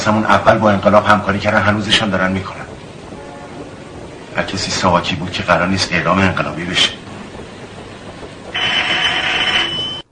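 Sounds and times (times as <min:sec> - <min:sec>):
speech: 0:00.0 - 0:02.6, 0:04.4 - 0:07.0
faint hiss: 0:00.0 - 0:09.7
electric doorbell buzzing: 0:08.6 - 0:10.0.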